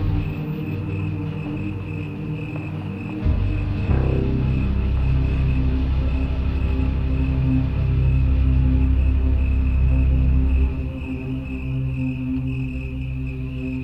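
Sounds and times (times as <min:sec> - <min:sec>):
computer-based guitars, synthesizers and pipe organs drone: 0:00.0 - 0:13.8
deep rumble of traffic: 0:00.0 - 0:13.8
steady high cricket chirr: 0:00.0 - 0:13.8.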